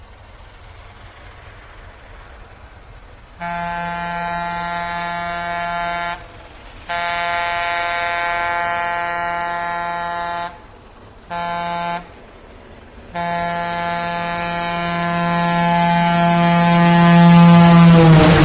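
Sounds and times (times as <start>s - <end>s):
train rumbling: 0.0s - 18.4s
train horn blasts: 3.4s - 10.7s, 11.3s - 12.1s, 13.1s - 18.4s.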